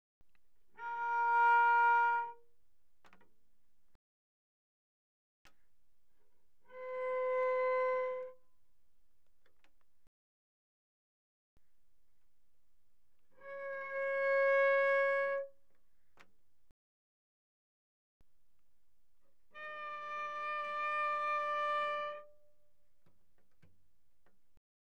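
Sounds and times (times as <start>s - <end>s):
cello bowed pianissimo on the D string: 0.8s - 2.4s, 6.6s - 8.4s, 13.4s - 15.6s, 19.5s - 22.4s.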